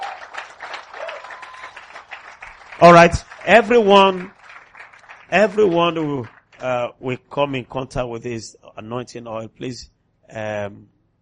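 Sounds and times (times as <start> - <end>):
audience clapping: 0.0 - 6.9
speech: 2.8 - 4.4, 5.3 - 11.0.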